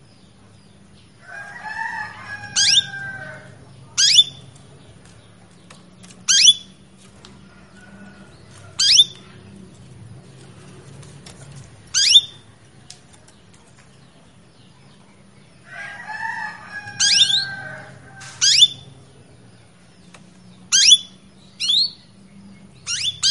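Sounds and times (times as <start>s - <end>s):
female Belgian canary chirping to males: 0.5s - 4.7s, 5.6s - 6.8s, 7.8s - 10.1s, 11.8s - 12.5s, 13.7s - 23.3s.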